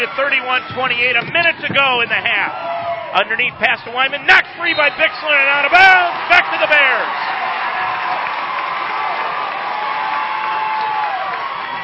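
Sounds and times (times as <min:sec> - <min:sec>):
speech: 0:00.0 - 0:07.4
large crowd cheering and shouting: 0:00.0 - 0:11.8
large crowd applauding in a standing ovation: 0:05.6 - 0:11.8.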